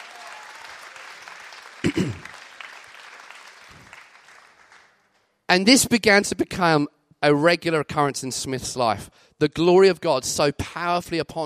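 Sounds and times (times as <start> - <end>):
audience applause: 0.0 - 5.0
speech: 5.5 - 11.4.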